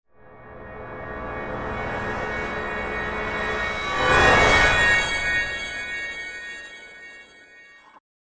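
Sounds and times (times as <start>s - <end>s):
magic sound effect: 0.3s - 8.0s.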